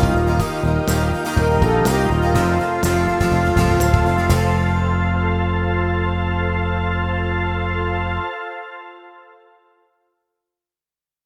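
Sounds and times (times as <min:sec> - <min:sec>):
hymn backing track: 0:00.0 - 0:09.0.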